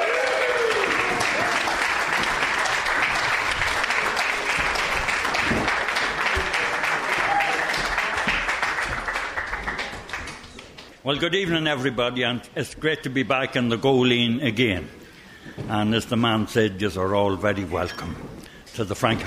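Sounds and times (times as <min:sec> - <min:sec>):
festival crowd applause welcoming a speaker: 0:00.0 - 0:10.9
speech: 0:11.1 - 0:19.2.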